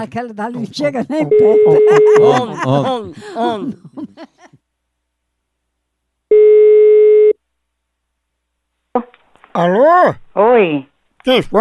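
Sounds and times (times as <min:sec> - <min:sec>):
speech: 0:00.0 - 0:04.3, 0:09.6 - 0:11.6
laughter: 0:00.8 - 0:04.6
telephone ring tone on a call being placed: 0:01.3 - 0:02.4, 0:06.3 - 0:07.4.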